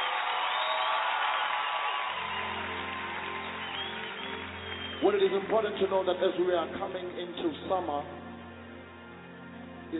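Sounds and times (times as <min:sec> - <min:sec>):
audience applauding and cheering: 0:00.0 - 0:06.5
speech: 0:05.0 - 0:08.2.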